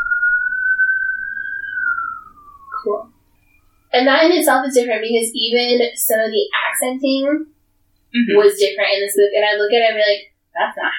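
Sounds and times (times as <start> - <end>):
siren outside: 0.0 - 6.0
speech: 2.8 - 3.1, 3.9 - 7.5, 8.1 - 10.9.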